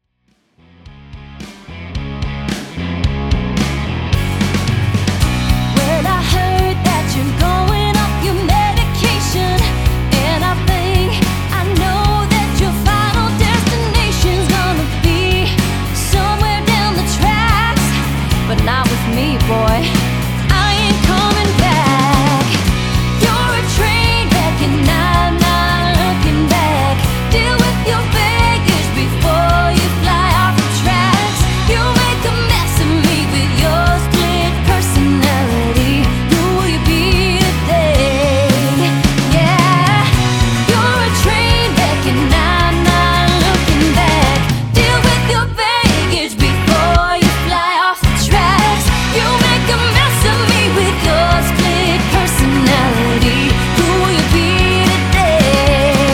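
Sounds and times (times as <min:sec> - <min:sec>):
pop country music: 0:00.6 - 0:56.1.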